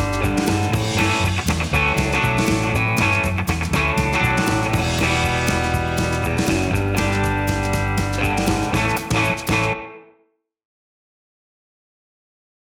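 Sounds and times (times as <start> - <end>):
band playing clean: 0.0 - 9.8.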